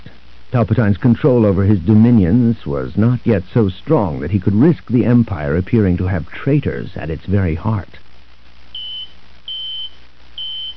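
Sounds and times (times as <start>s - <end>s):
speech: 0.5s - 8.0s
personal comlink beeping: 8.8s - 10.7s.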